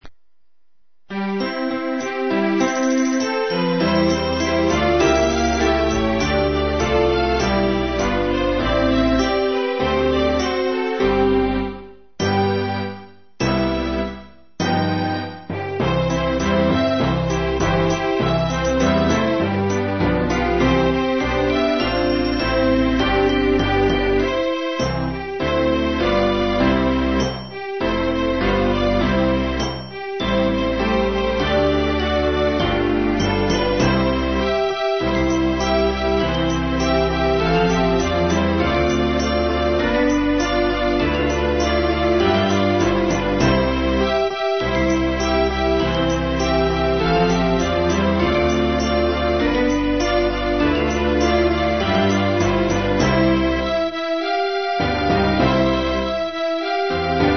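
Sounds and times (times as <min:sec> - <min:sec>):
string orchestra: 0:01.2 - 0:12.5, 0:13.5 - 0:57.3.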